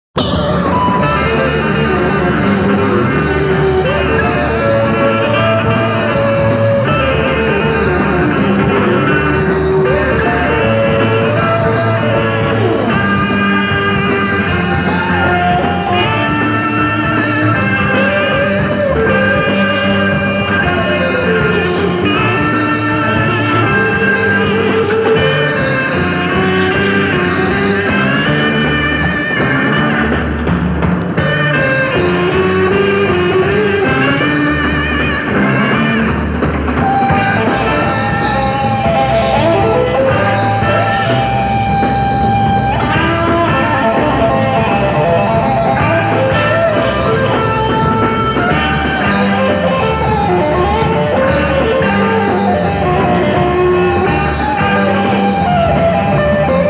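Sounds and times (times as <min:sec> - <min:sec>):
instrumental shuffle: 0:00.1 - 0:56.6.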